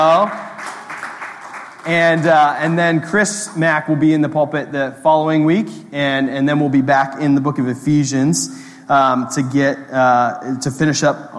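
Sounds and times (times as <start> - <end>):
speech: 0.0 - 0.5, 1.8 - 11.3
audience clapping: 0.0 - 3.6.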